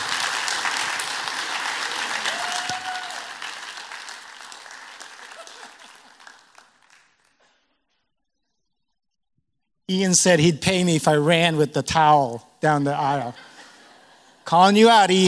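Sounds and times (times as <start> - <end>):
crowd applause: 0.0 - 7.4
speech: 9.9 - 13.5, 14.5 - 15.2.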